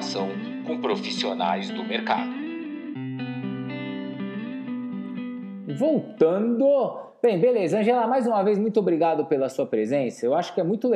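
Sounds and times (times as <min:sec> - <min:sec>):
podcast jingle with audio effects: 0:00.0 - 0:08.2
speech: 0:00.2 - 0:02.4, 0:05.8 - 0:10.9.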